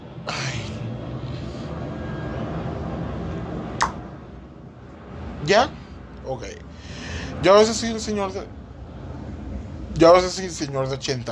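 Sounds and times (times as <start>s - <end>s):
airplane flying overhead: 0.0s - 11.2s
sharp click: 3.8s - 4.0s
speech: 5.4s - 8.6s, 10.0s - 11.2s.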